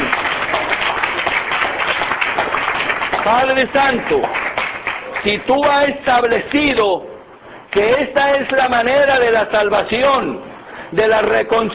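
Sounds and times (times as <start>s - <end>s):
church congregation applauding: 0.0s - 6.8s
speech: 3.3s - 4.4s, 5.2s - 7.1s, 7.7s - 11.7s.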